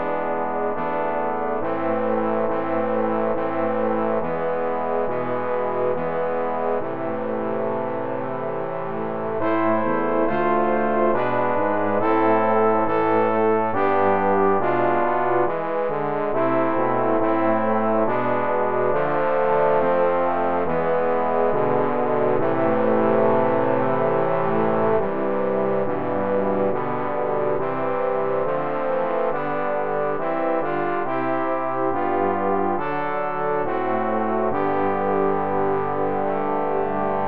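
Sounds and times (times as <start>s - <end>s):
trombone quartet: 0.0s - 37.2s.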